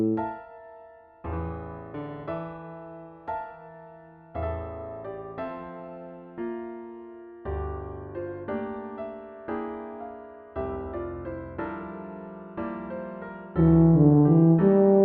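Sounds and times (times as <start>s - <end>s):
tuba playing an elegy: 0.0s - 0.2s, 13.6s - 15.0s.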